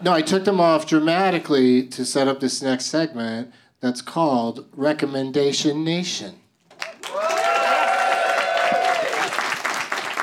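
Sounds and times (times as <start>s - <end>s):
speech: 0.0s - 6.4s
audience applause: 6.8s - 10.2s.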